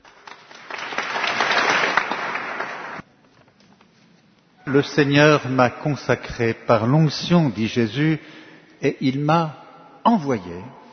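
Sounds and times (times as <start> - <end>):
audience applauding: 0.0 - 3.0
speech: 4.7 - 10.8.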